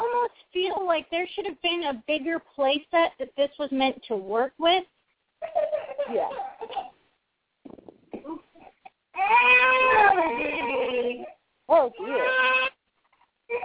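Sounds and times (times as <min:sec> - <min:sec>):
speech: 0:00.9 - 0:06.5, 0:09.2 - 0:12.7
baby girl fussing and crying: 0:05.4 - 0:07.0, 0:08.2 - 0:12.8, 0:13.5 - 0:13.6.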